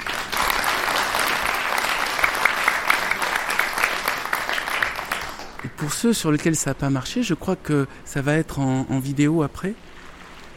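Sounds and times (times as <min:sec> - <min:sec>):
crowd clapping: 0:00.0 - 0:06.0
speech: 0:05.8 - 0:09.9.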